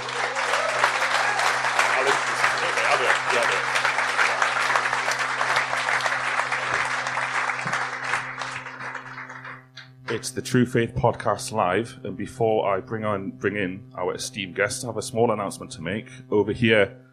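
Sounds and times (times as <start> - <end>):
live audience applause: 0.0 - 9.7
constant low electrical hum: 0.0 - 17.1
speech: 10.2 - 17.0.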